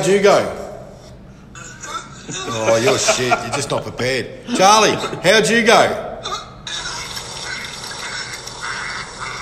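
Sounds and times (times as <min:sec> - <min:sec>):
speech: 0:00.0 - 0:00.6, 0:02.3 - 0:06.4
laughter: 0:02.0 - 0:05.4
vomiting sound effect: 0:06.2 - 0:09.3.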